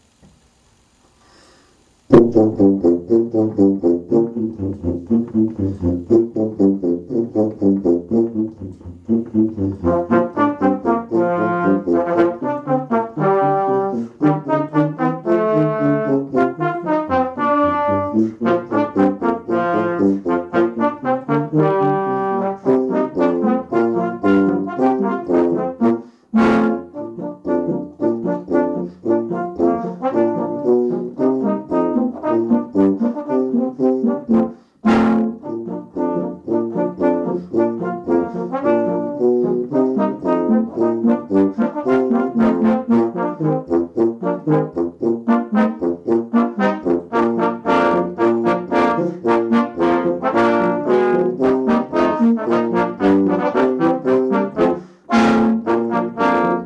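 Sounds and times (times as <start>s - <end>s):
Christmas song: 0.8s - 56.6s.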